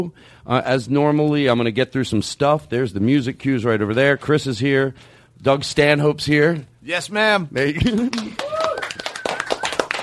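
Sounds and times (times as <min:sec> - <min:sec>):
speech: 0:00.0 - 0:08.4
scattered clapping from a small studio audience: 0:07.8 - 0:10.0.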